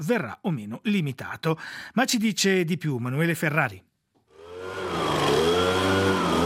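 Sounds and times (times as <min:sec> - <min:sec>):
speech: 0:00.0 - 0:03.9
petrol leaf blower running: 0:04.3 - 0:06.4.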